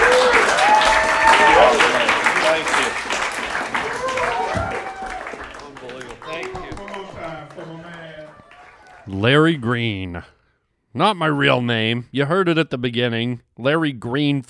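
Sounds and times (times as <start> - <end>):
audience applause at a live stand-up show for a religious group: 0.0 - 9.8
speech: 9.2 - 14.4.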